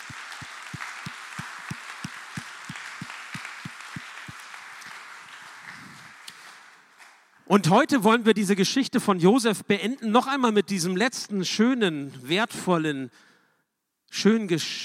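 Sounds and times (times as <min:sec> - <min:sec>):
audience applause: 0:00.0 - 0:07.0
speech: 0:07.5 - 0:13.3, 0:14.1 - 0:14.8.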